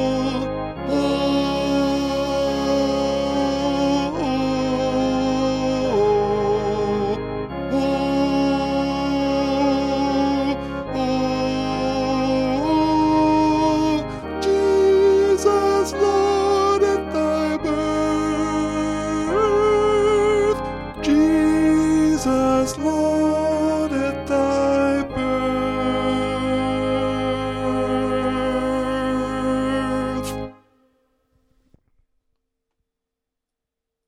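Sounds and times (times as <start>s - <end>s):
alto part of a Christmas carol: 0.0s - 31.8s.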